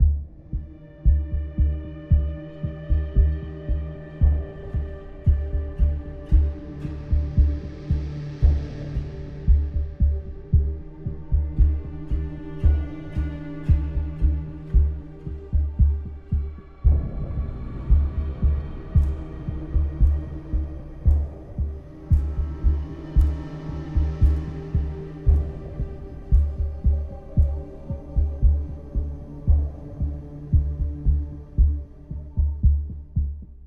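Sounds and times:
light tension mood music: 0:00.0 - 0:33.6.

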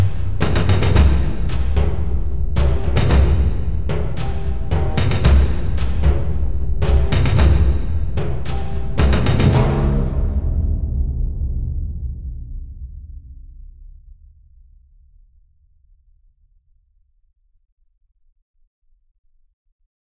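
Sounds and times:
siege assault arpeggio: 0:00.0 - 0:09.9
siege assault drums: 0:00.0 - 0:14.5.

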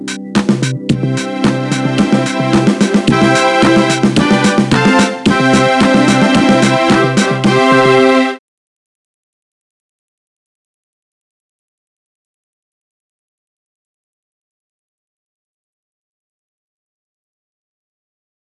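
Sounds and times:
minigame start sound: 0:00.5 - 0:08.4.

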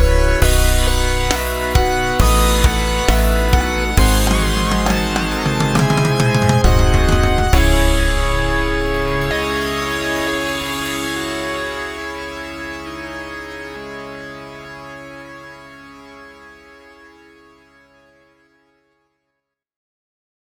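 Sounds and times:
sad music ending: 0:00.0 - 0:15.8.

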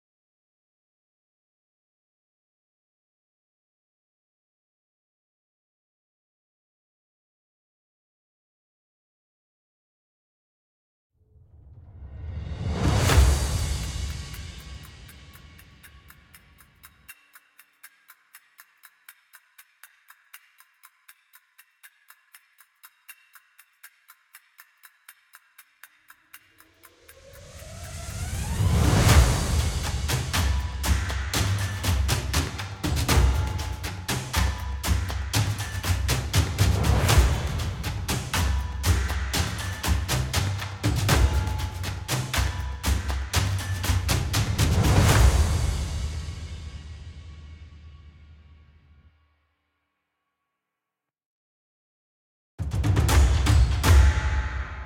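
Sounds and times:
real percussion phrase: 0:12.3 - 0:48.7, 0:52.6 - 0:54.8.

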